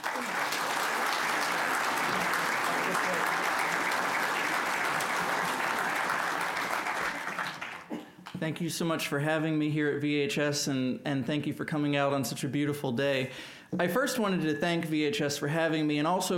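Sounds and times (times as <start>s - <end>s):
audience applause welcoming a speaker to a Virginia Historical Society talk: 0.0s - 8.3s
speech: 8.4s - 16.3s.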